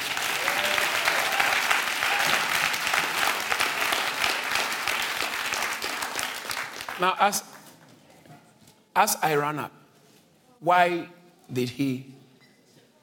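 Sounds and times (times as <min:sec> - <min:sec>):
audience applause: 0:00.0 - 0:07.2
speech: 0:07.0 - 0:07.5, 0:09.0 - 0:09.8, 0:10.6 - 0:12.2.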